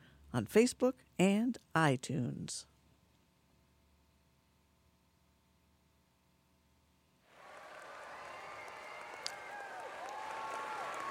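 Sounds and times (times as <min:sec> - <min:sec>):
speech: 0:00.3 - 0:02.7
people cheering: 0:07.3 - 0:11.0.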